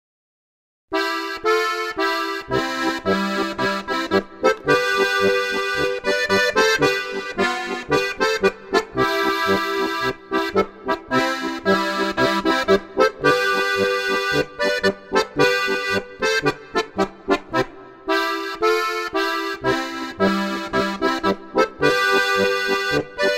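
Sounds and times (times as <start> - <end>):
polka music: 0.9 - 23.3.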